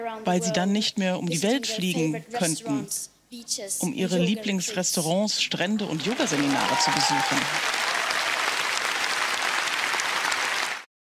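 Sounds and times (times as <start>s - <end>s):
speech: 0.0s - 7.8s
crowd applause: 5.8s - 10.9s.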